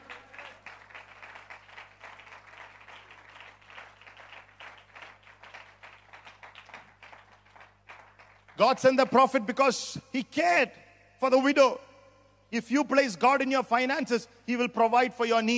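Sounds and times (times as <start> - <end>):
crowd clapping: 0.0 - 9.1
speech: 8.6 - 11.8, 12.5 - 15.5.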